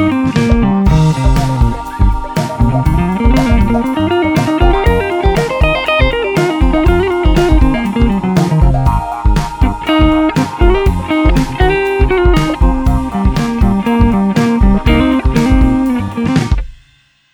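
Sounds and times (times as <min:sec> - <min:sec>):
guitar improvisation: 0:00.0 - 0:16.7.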